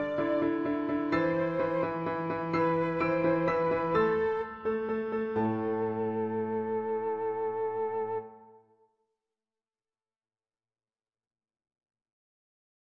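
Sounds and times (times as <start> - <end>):
easy flute melody: 0.0 - 8.6.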